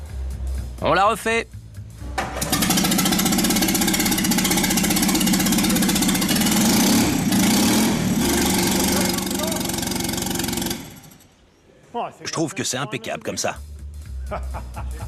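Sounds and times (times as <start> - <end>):
speech: 0.8 - 1.6, 12.0 - 13.7, 14.3 - 15.0
car engine block running without exhaust: 2.2 - 11.2
laughter: 14.2 - 15.0.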